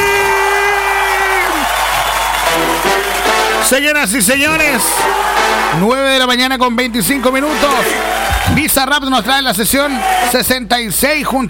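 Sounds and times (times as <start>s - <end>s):
whoops and shouts: 0.0s - 2.5s, 4.3s - 5.8s
crowd clapping: 0.0s - 10.5s
speech: 3.7s - 11.4s.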